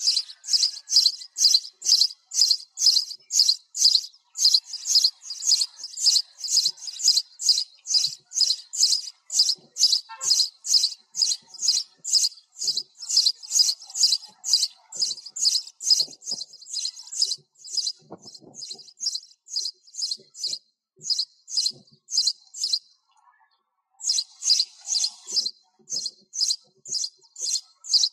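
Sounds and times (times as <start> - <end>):
sparrow chirping: 0.0 - 23.1, 24.0 - 28.1.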